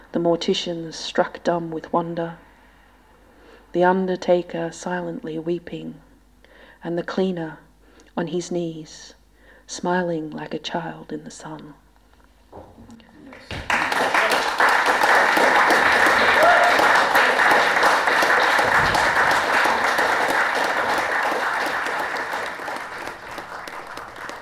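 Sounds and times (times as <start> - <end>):
speech: 0.1 - 2.4, 3.7 - 6.0, 6.8 - 7.6, 8.2 - 11.8, 12.5 - 13.6
live audience applause: 13.3 - 24.4.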